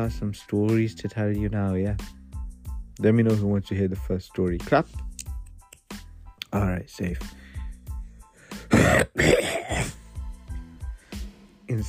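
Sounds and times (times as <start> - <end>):
speech: 0.0 - 2.2, 3.0 - 5.1, 6.5 - 7.4, 8.7 - 10.0, 11.7 - 11.8
throat clearing: 8.6 - 10.0.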